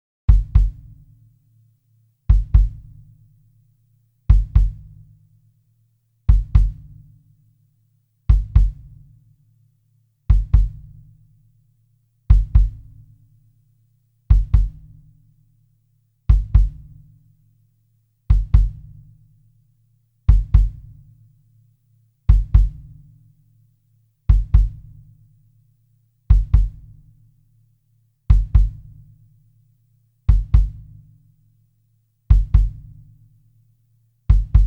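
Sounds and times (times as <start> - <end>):
kick drum: 0.3 - 1.2, 2.3 - 3.2, 4.2 - 5.2, 6.3 - 7.2, 8.3 - 9.2, 10.2 - 11.2, 12.3 - 13.2, 14.3 - 15.3, 16.3 - 17.2, 18.3 - 19.2, 20.3 - 21.2, 22.3 - 23.2, 24.3 - 25.2, 26.3 - 27.2, 28.3 - 29.2, 30.3 - 31.3, 32.3 - 33.2, 34.3 - 34.6.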